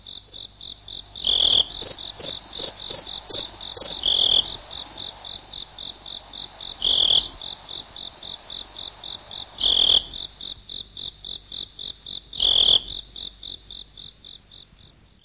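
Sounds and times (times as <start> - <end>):
insect calling with a high pulsed trill: 0.0 - 15.0.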